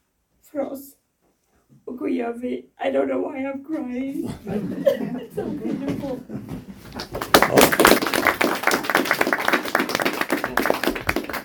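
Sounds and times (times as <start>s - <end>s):
speech: 0.5s - 1.0s, 2.0s - 7.7s
laughter: 4.2s - 7.3s
audience applause: 6.9s - 11.4s.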